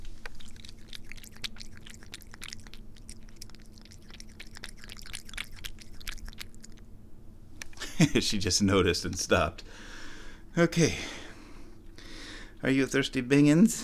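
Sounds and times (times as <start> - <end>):
cat drinking water: 0.0 - 6.9
speech: 8.0 - 9.9, 10.6 - 11.2, 12.6 - 13.8.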